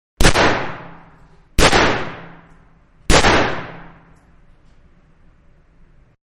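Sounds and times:
Magnum 357 revolver gunshots: 0.2 - 4.2.

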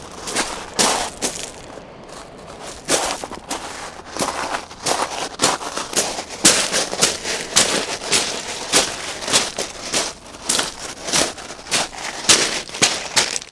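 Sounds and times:
footsteps walking on a pebble beach: 0.0 - 13.5.

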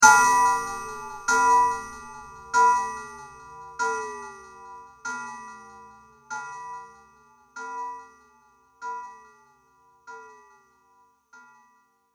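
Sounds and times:
haunted village bell: 0.0 - 8.2.

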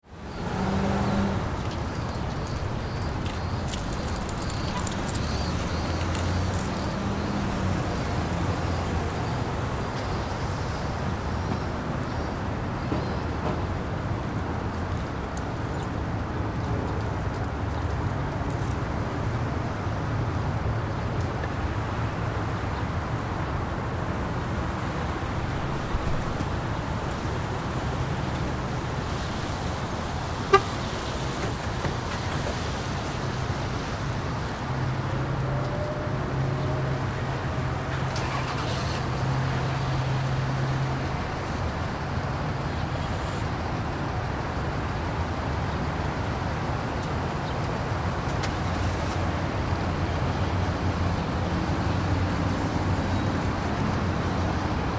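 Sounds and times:
parking lot ambience: 0.0 - 54.9.

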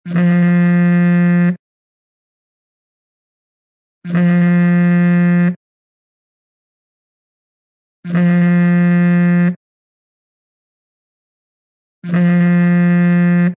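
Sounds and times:
cell phone vibrating: 0.0 - 1.6, 4.0 - 5.6, 8.1 - 9.6, 12.0 - 13.5.

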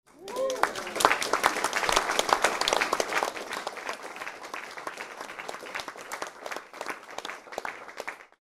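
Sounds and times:
small indoor crowd applauding: 0.0 - 8.4
person whooping: 0.1 - 1.2.

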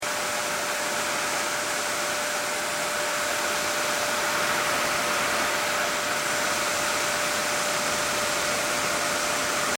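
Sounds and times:
vacuum cleaner running: 0.0 - 9.7.

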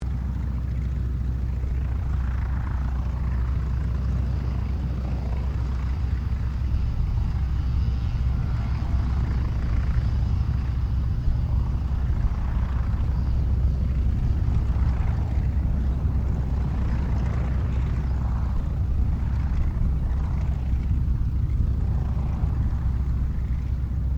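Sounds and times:
distant CAC Wirraway aircraft idling: 0.0 - 24.1.

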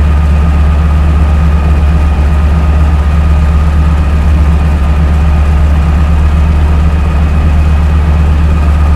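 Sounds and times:
AT-6D Harvard Mk III propeller aircraft engine idling, heard from interior: 0.0 - 8.9.

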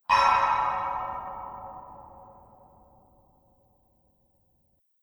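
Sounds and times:
metal bangs: 0.1 - 2.7.

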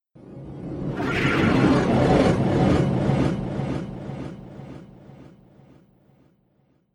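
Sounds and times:
horror sci-fi sound effects: 0.6 - 4.7.

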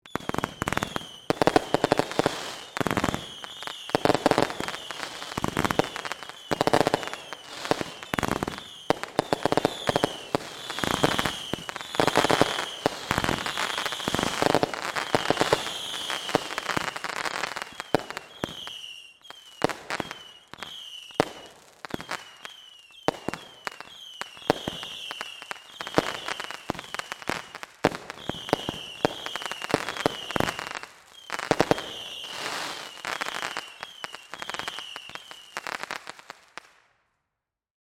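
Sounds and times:
firework whistles: 0.0 - 36.2.

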